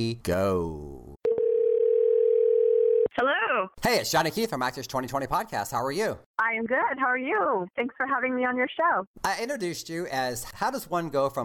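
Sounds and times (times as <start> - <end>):
speech: 0.0 - 1.1, 3.2 - 11.4
telephone dial tone while placing a call: 1.2 - 3.1.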